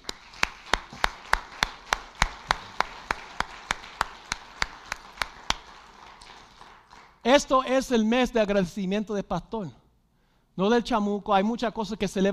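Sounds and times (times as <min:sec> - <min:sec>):
audience clapping: 0:00.0 - 0:07.5
speech: 0:07.3 - 0:09.8, 0:10.6 - 0:12.3.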